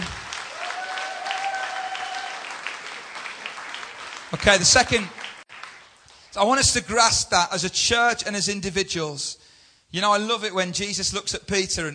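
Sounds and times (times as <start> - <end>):
crowd clapping: 0.0 - 6.4
speech: 4.3 - 5.2, 6.4 - 11.9.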